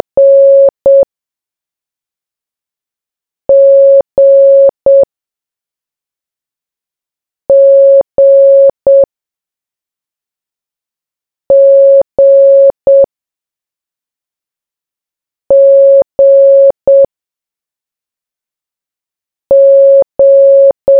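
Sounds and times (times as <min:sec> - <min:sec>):
morse code beeps: 0:00.2 - 0:01.1, 0:03.5 - 0:05.1, 0:07.5 - 0:09.1, 0:11.5 - 0:13.1, 0:15.5 - 0:17.1, 0:19.5 - 0:20.9.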